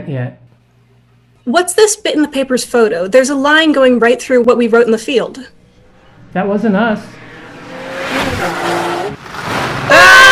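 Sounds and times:
speech: 0.0 - 0.4, 1.4 - 5.6, 6.3 - 7.2, 8.4 - 8.9
red Corvette skidding to a halt by the TARDIS: 5.6 - 10.3.

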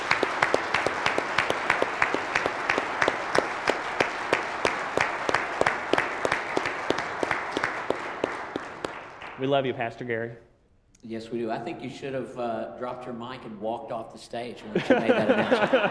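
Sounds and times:
audience applause: 0.0 - 9.5
speech: 9.4 - 15.8
laughter: 14.6 - 15.8.

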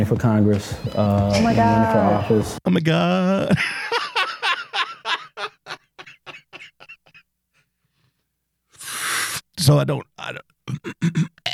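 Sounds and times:
speech: 0.0 - 4.0, 9.7 - 11.3
laughter: 3.2 - 7.2
person coughing: 5.4 - 7.2, 10.7 - 11.5.

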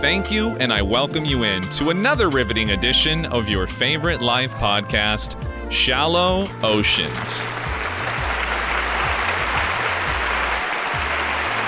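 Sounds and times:
speech: 0.0 - 7.8
audience applause: 7.0 - 11.6.

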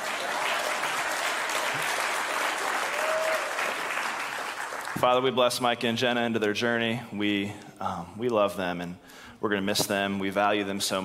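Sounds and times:
audience applause: 0.0 - 5.2
speech: 5.0 - 11.0.

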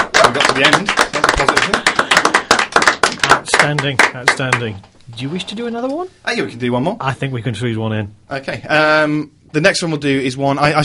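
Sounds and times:
small audience clapping after a poem about the Great War: 0.0 - 4.8
speech: 0.4 - 1.9, 3.7 - 10.8.

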